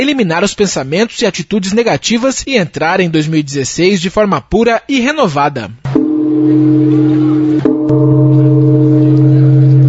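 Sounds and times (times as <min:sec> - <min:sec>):
speech: 0:00.0 - 0:05.8, 0:06.4 - 0:08.7
Buddhist temple bell tolling: 0:05.9 - 0:09.8.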